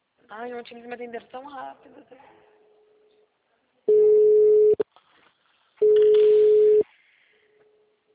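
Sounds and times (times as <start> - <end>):
speech: 0.4 - 2.5
ringback tone of an outgoing phone call: 3.9 - 4.8, 5.8 - 6.8.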